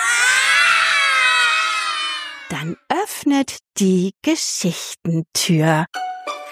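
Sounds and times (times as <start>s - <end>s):
children imitating lion roars: 0.0s - 2.5s
speech: 2.6s - 6.1s.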